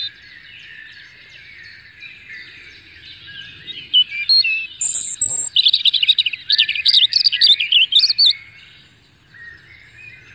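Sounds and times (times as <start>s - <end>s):
European robin song with warbles, whistle and trill: 0.0s - 10.3s.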